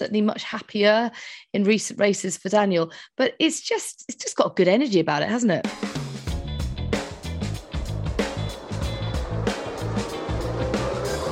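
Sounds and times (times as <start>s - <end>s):
speech: 0.0s - 6.0s
Formula 1 cars, a Ferrari and McLarens, racing past with engines roaring: 7.0s - 11.3s.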